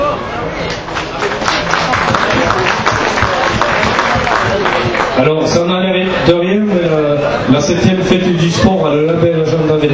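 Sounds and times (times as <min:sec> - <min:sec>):
audience applauding volunteers: 0:00.9 - 0:05.6
speech: 0:05.2 - 0:09.9.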